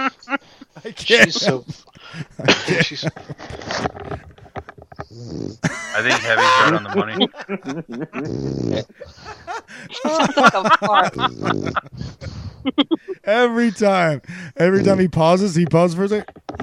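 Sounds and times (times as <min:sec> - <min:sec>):
people talking and laughing: 0:00.0 - 0:04.2, 0:05.6 - 0:15.4
speech: 0:00.8 - 0:03.4, 0:06.0 - 0:09.3, 0:09.9 - 0:11.9, 0:12.6 - 0:16.6
pet dog snoring: 0:05.0 - 0:05.6, 0:08.2 - 0:08.9.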